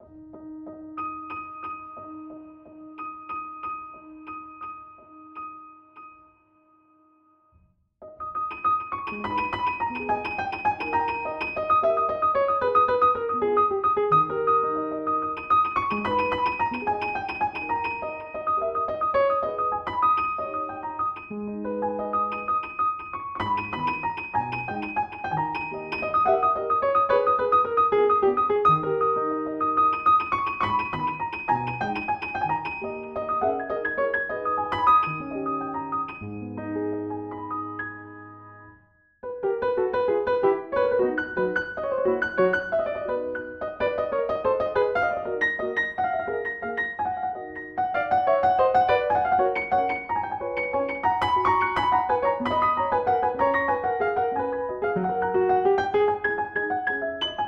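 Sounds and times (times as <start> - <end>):
classical piano piece: 0.0 - 57.4.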